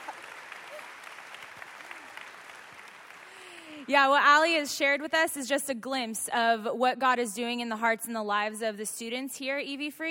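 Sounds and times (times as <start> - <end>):
hand applause: 0.0 - 3.8
speech: 3.8 - 10.0.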